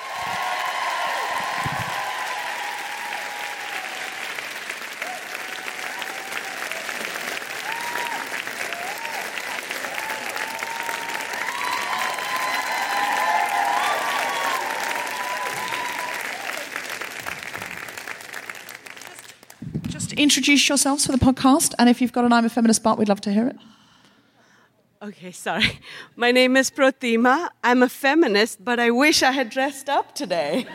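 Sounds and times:
audience applauding guests: 0:00.0 - 0:20.0
speech: 0:20.2 - 0:23.8, 0:25.1 - 0:30.7.

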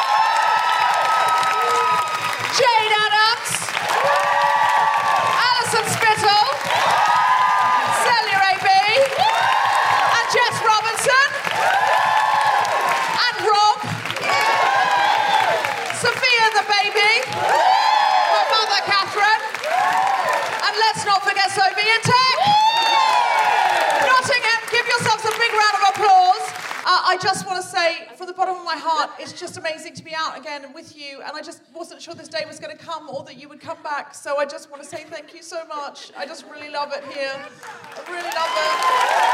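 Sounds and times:
crowd applauding and cheering: 0:00.0 - 0:27.0, 0:37.4 - 0:39.3
speech: 0:27.0 - 0:39.3.

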